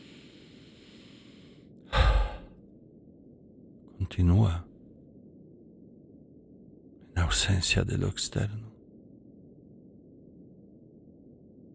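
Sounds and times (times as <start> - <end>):
soft breath during a guided urban meditation practice: 0.0 - 2.7
speech: 4.1 - 4.7, 7.3 - 8.7.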